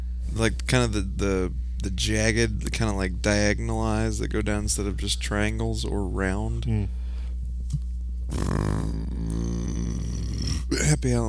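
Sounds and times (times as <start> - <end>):
low hum: 0.0 - 11.2
speech: 0.4 - 7.0, 7.7 - 9.8, 10.7 - 11.2
burp after drinking seltzer: 8.3 - 11.0.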